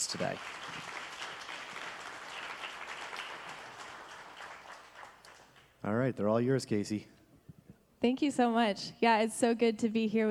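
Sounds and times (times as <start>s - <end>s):
audience applause: 0.0s - 5.8s
speech: 0.1s - 0.9s, 5.8s - 7.2s, 8.0s - 10.2s.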